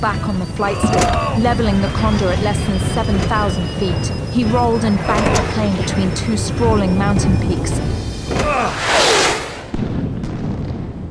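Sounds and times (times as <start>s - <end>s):
speech: 0.0s - 8.9s
descending whistling tones: 0.0s - 9.7s
missiles exploding against mountains: 8.7s - 11.0s.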